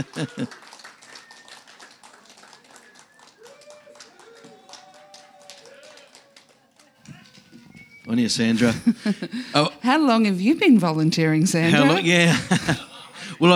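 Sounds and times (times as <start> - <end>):
speech: 0.0 - 0.7, 8.1 - 13.5
laughter: 0.0 - 0.9, 2.6 - 13.5
audience applause: 0.0 - 9.7, 11.4 - 13.5.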